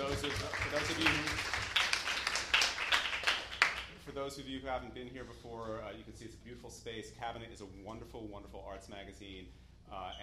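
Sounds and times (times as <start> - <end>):
audience applause: 0.0 - 3.9
speech: 0.2 - 1.5, 4.2 - 10.2.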